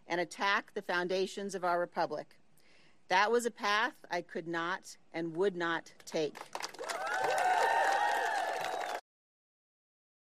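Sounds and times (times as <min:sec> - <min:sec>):
speech: 0:00.1 - 0:02.4, 0:03.1 - 0:06.6
audience giving a standing ovation with clapping: 0:06.4 - 0:09.0.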